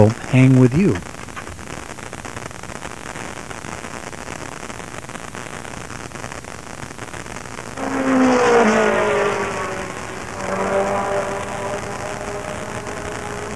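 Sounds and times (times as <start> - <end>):
speech: 0.0 - 1.1
steady noise: 0.0 - 13.5
race cars roaring past at the Corporatopolis 500: 7.8 - 13.5.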